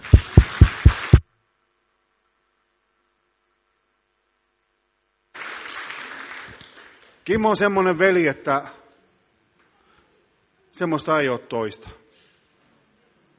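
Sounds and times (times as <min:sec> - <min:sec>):
audience applause: 0:00.0 - 0:01.2, 0:05.3 - 0:07.2
speech: 0:07.2 - 0:08.8, 0:10.8 - 0:12.0.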